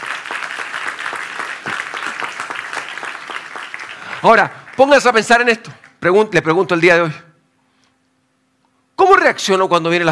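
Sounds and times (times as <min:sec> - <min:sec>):
audience applause: 0:00.0 - 0:06.0
speech: 0:04.2 - 0:07.2, 0:09.3 - 0:10.0.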